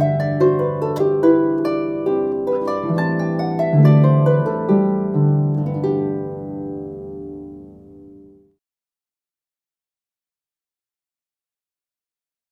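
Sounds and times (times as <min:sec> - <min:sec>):
harp notes from F to F: 0:00.0 - 0:08.5.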